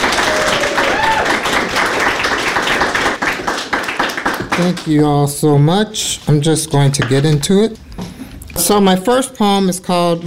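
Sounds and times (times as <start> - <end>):
audience applause: 0.0 - 5.0
speech: 4.6 - 10.2.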